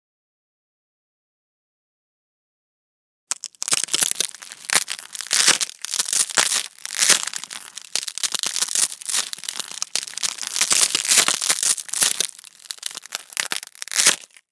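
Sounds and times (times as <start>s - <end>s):
boards breaking: 3.3s - 14.4s.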